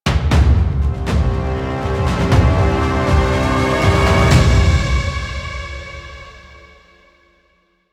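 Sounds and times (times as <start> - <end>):
musical stinger: 0.9 - 6.7.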